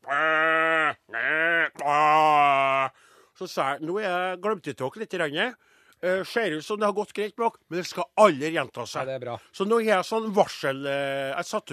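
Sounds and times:
sheep bleating: 0.0s - 3.0s
speech: 3.4s - 11.7s.

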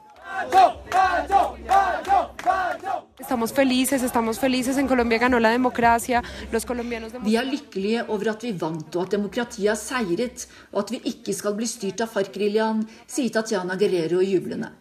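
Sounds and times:
crowd chanting at election night vigil: 0.0s - 6.0s
speech: 0.4s - 1.4s, 3.2s - 14.7s.

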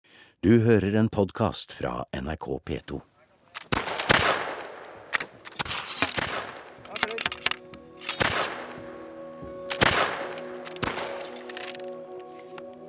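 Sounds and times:
speech: 0.4s - 3.1s
musket shots: 3.6s - 8.8s, 9.7s - 11.8s.

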